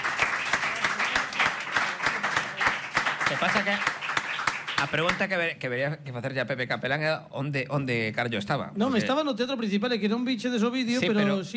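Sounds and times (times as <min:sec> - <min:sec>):
audience applause: 0:00.0 - 0:05.3
speech: 0:03.3 - 0:04.0, 0:04.8 - 0:11.5.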